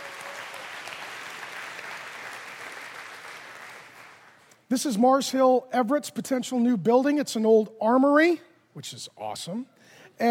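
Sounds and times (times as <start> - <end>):
audience applause: 0.0 - 4.4
speech: 4.7 - 10.2.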